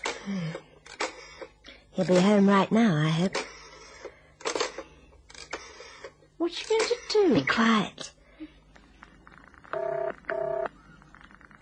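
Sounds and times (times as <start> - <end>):
speech: 2.0 - 3.5, 7.3 - 8.1
telephone being dialed: 9.7 - 10.7.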